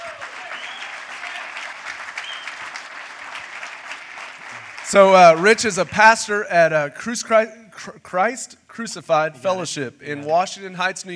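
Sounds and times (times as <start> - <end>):
church audience applauding to welcome a guest pastor: 0.0 - 6.2
speech: 4.9 - 11.1.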